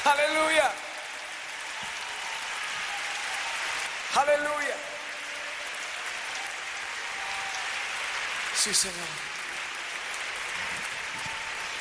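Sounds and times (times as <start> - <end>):
audience applauding: 0.0 - 11.8
speech: 4.2 - 4.9, 8.6 - 9.4.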